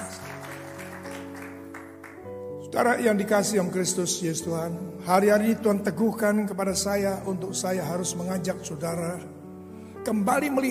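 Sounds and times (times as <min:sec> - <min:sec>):
audience applause: 0:00.0 - 0:02.3
speech: 0:02.7 - 0:09.4, 0:10.0 - 0:10.7.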